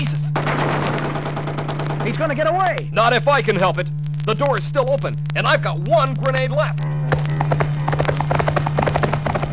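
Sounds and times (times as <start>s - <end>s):
steady low hum: 0.0s - 9.5s
speech: 2.1s - 6.9s
horse galloping: 6.8s - 9.5s.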